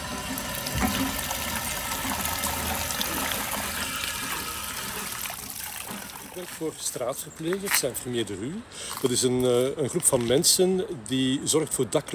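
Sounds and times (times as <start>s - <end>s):
water fountain splashing in the Parc de la Rosée in Anderlecht: 0.0s - 6.8s
speech: 0.9s - 1.2s, 6.4s - 12.1s.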